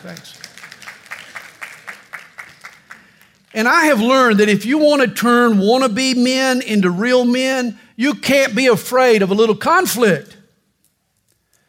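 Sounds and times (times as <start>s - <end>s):
speech: 0.0s - 0.5s, 3.5s - 10.4s
audience applause: 0.0s - 3.5s.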